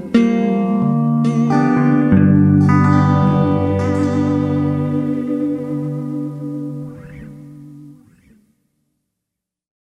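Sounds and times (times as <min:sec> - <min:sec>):
jazzy bluesy echoing music: 0:00.0 - 0:08.5.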